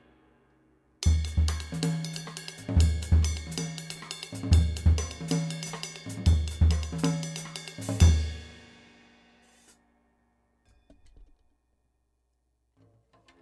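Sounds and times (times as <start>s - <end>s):
Zildjian 20 K Dry cymbal: 0.0s - 10.1s.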